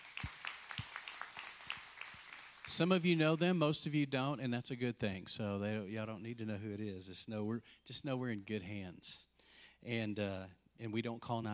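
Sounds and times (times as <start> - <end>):
audience clapping: 0.0 - 3.4
speech: 2.7 - 11.5.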